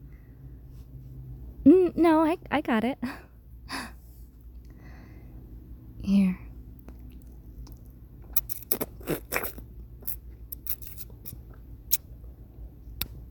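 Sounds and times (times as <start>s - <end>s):
speech: 1.6s - 3.2s
someone biting and chewing food to taste it: 6.8s - 12.1s.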